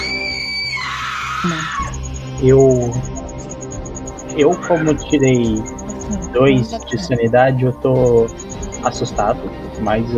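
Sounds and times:
shrill scream during a tabletop horror role-playing game: 0:00.0 - 0:02.0, 0:04.4 - 0:05.1
speech: 0:01.4 - 0:03.1, 0:04.4 - 0:10.1
laughter: 0:02.4 - 0:03.0, 0:04.4 - 0:10.1.

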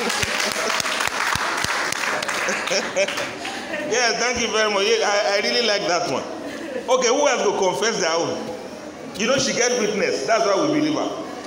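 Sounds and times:
audience clapping: 0:00.0 - 0:03.8
laughter: 0:00.0 - 0:05.1, 0:05.8 - 0:07.5
speech: 0:02.7 - 0:08.5, 0:09.2 - 0:11.2.

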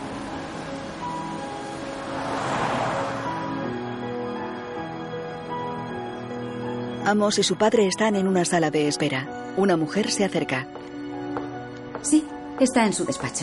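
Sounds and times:
car engine hum: 0:00.0 - 0:04.4
road and wind noise: 0:00.0 - 0:06.4
speech: 0:07.1 - 0:10.9, 0:12.0 - 0:13.4.

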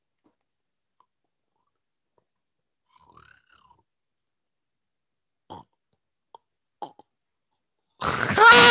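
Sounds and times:
person imitating a predator creature call: 0:08.0 - 0:08.7.

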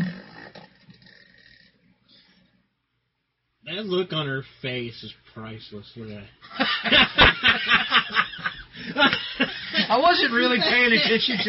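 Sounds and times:
fart-like noise: 0:00.0 - 0:01.8
speech: 0:03.7 - 0:11.4
laughter: 0:06.4 - 0:11.4.

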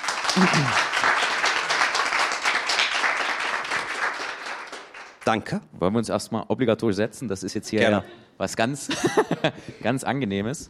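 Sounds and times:
audience applause: 0:00.0 - 0:05.2
speech: 0:00.4 - 0:00.9, 0:05.3 - 0:10.6
laughter: 0:08.8 - 0:09.9.

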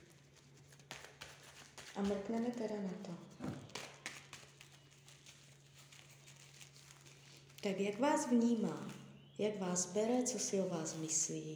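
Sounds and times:
tarot cards being shuffled: 0:00.0 - 0:07.7
faint steady low hum: 0:00.0 - 0:11.5
speech: 0:02.0 - 0:03.5, 0:07.6 - 0:11.5.

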